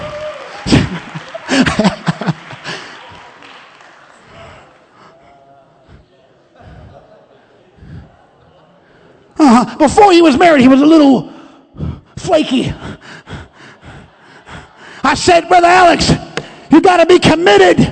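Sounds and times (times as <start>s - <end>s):
audience clapping: 0.0s - 5.2s
laughter: 0.5s - 9.4s, 13.3s - 15.0s
speech: 9.6s - 11.3s, 12.3s - 12.9s, 15.2s - 17.8s.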